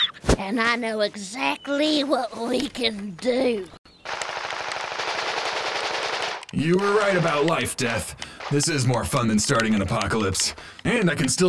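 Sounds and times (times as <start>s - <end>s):
speech: 0.4s - 3.8s, 6.5s - 11.4s
automatic gunfire from a first-person shooter video game: 4.0s - 10.2s.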